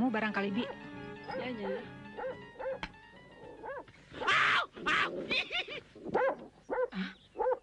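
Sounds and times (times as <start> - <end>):
speech: 0.1 - 2.9, 3.6 - 7.2
dog barking: 1.6 - 2.8, 3.6 - 4.4, 6.1 - 7.6.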